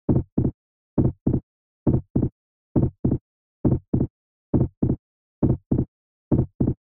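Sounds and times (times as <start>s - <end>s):
heartbeat: 0.1s - 6.8s.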